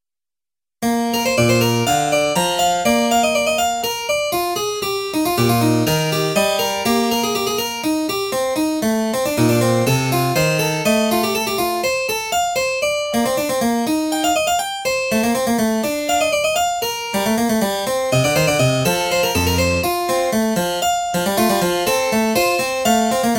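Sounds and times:
two-voice harpsichord inventions: 0:00.8 - 0:23.3.

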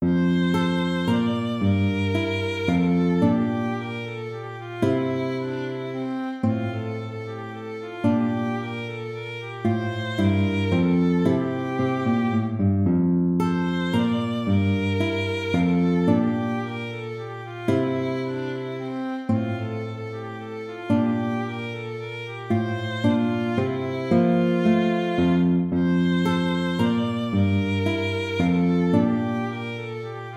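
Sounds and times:
minuet in a major key: 0:00.0 - 0:30.3.

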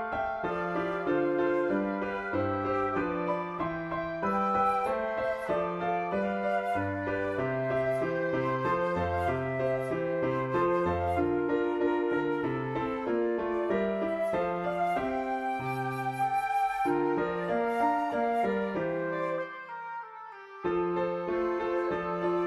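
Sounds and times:
flute: 0:00.0 - 0:22.4
oboe: 0:00.0 - 0:22.4
piano: 0:00.0 - 0:22.4.

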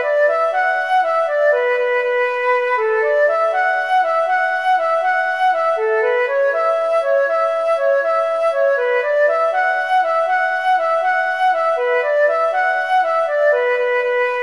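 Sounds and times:
march for flute oboe and harp: 0:00.0 - 0:14.4.

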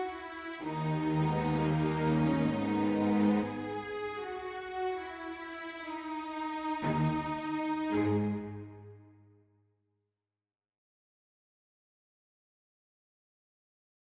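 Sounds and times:
string quartet playing a prelude: 0:00.0 - 0:09.1.

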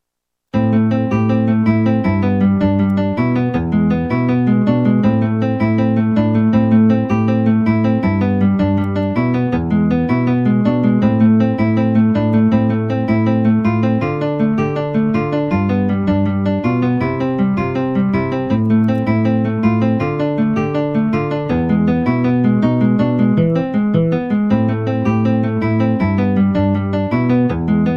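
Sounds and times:
guitar: 0:00.5 - 0:27.9.

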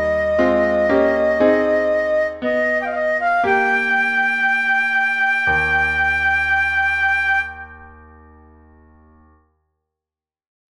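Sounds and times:
flute: 0:00.0 - 0:08.4
piano: 0:00.0 - 0:09.5.

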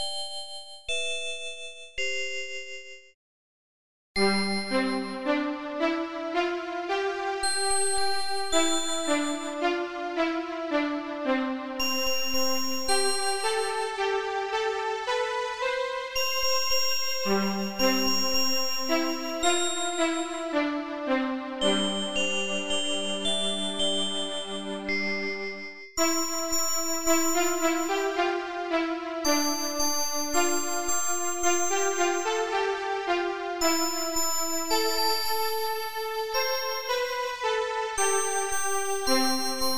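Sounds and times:
glockenspiel: 0:00.0 - 0:03.2, 0:04.2 - 0:05.4, 0:07.4 - 0:09.6, 0:11.8 - 0:14.1, 0:16.2 - 0:20.7, 0:21.6 - 0:28.3, 0:29.2 - 0:32.7, 0:33.6 - 0:37.4, 0:38.0 - 0:39.7
violin: 0:04.2 - 0:35.7.

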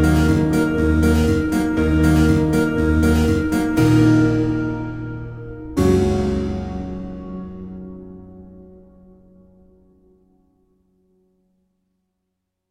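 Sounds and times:
harpsichord: 0:00.0 - 0:08.6.

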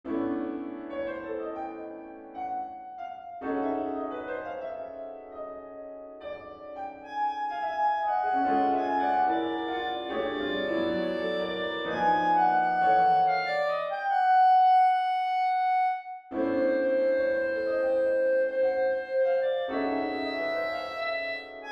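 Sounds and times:
B-flat clarinet: 0:00.1 - 0:21.6.

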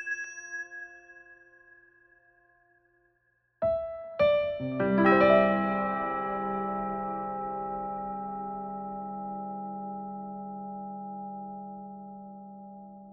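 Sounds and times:
bells: 0:00.0 - 0:03.0, 0:03.8 - 0:13.1
piano four hands: 0:03.6 - 0:09.0
strings: 0:04.2 - 0:07.8.

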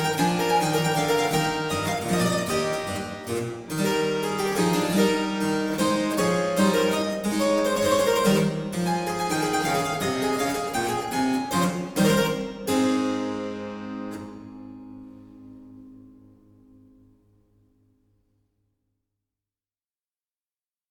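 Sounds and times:
minuet: 0:00.0 - 0:16.3.

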